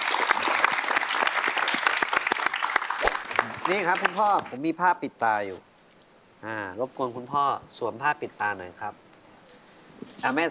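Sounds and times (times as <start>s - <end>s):
audience applause: 0.0s - 4.6s
speech: 3.7s - 5.7s, 6.4s - 9.0s, 10.2s - 10.5s.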